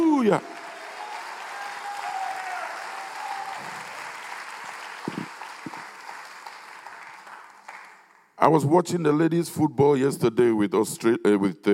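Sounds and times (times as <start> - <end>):
audience clapping: 0.0 - 8.4
speech: 0.2 - 0.6, 8.5 - 11.7.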